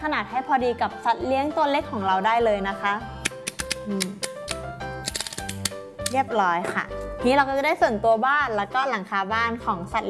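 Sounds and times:
speech: 0.0s - 3.2s, 3.9s - 4.3s, 6.1s - 10.0s
plastic bottle being cut into two pieces: 3.2s - 6.2s.

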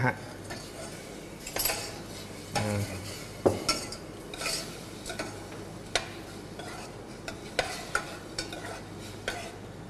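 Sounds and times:
faint sizzle of minced pork seasoned with fish sauce: 0.0s - 9.8s
spatula scraping and stirring minced pork in a dry pan: 0.5s - 9.7s.

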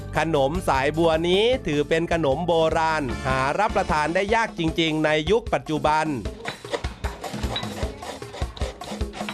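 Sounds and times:
speech: 0.2s - 6.4s
coconut being grated: 6.1s - 9.3s.

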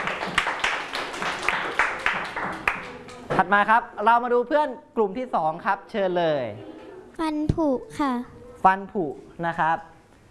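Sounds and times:
classmates clapping: 0.0s - 3.3s
speech: 3.4s - 9.9s.

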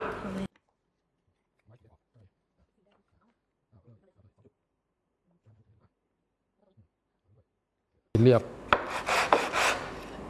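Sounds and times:
speech: 8.2s - 9.1s
hand sanding wood with rasping back-and-forth strokes: 8.7s - 10.0s.

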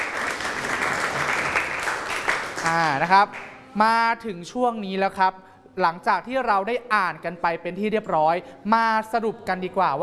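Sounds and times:
applause: 0.0s - 3.6s
speech: 2.6s - 10.0s.

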